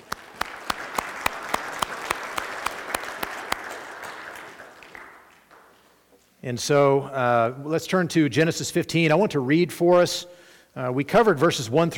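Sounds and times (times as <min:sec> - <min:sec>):
audience applause for volunteers: 0:00.0 - 0:05.8
speech: 0:06.4 - 0:11.9.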